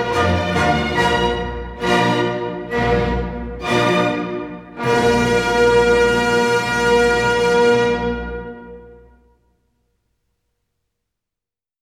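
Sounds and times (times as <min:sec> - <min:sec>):
symphony first movement: 0:00.0 - 0:09.3.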